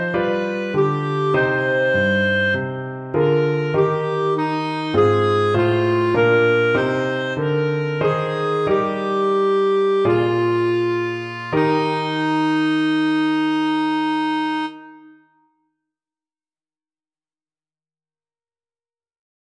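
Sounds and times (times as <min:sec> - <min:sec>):
piano melody: 0:00.0 - 0:15.5.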